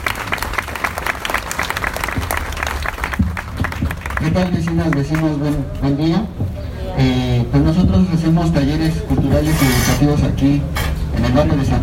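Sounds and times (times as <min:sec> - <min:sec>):
audience applause: 0:00.0 - 0:05.8
speech: 0:04.2 - 0:06.4, 0:07.0 - 0:11.8.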